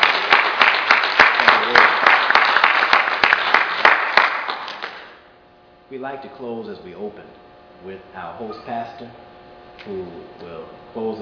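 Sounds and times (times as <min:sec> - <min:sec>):
audience applause: 0:00.0 - 0:05.2
speech: 0:05.9 - 0:11.2.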